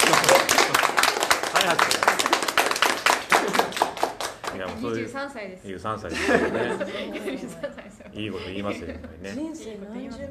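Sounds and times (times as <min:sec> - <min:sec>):
laughter: 0:00.0 - 0:02.0, 0:03.4 - 0:04.0, 0:06.1 - 0:09.4
group of people clapping on cue: 0:00.0 - 0:05.2
speech: 0:04.7 - 0:10.2.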